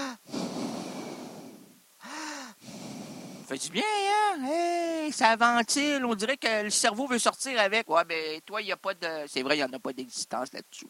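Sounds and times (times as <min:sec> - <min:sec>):
long loud breath in through mouth: 0:00.0 - 0:03.5
voiced exhale through nose: 0:00.0 - 0:03.5
speech: 0:03.5 - 0:10.8.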